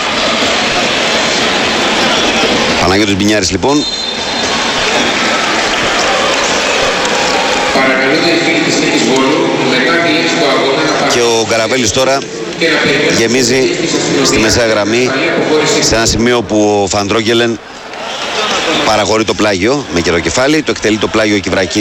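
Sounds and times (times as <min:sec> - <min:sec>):
stadium crowd applauding a substitution: 0:00.0 - 0:13.3, 0:17.7 - 0:21.7
speech: 0:03.0 - 0:04.0, 0:08.0 - 0:17.8, 0:18.9 - 0:21.7.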